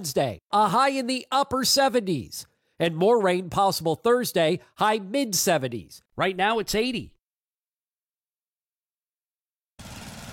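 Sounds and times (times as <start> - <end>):
speech: 0.0 - 7.2
lawn mower engine running: 9.8 - 10.3.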